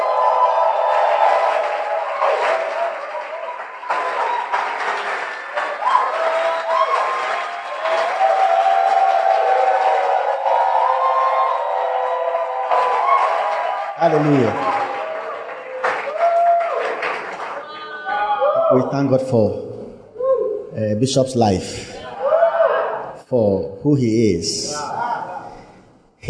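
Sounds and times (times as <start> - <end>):
crowd applauding: 0.0 - 18.5
scattered cheers and voices: 0.0 - 18.9, 22.0 - 23.2
speech: 14.2 - 14.6, 19.0 - 19.7, 20.8 - 21.9, 23.3 - 24.9.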